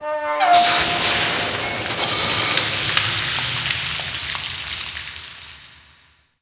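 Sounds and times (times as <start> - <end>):
small steam blast: 0.4 - 6.2
ocean: 0.6 - 5.6.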